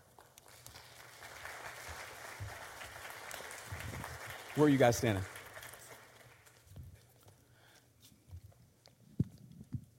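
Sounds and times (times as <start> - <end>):
church congregation applause welcoming guests: 0.0 - 6.7
speech: 4.6 - 5.3.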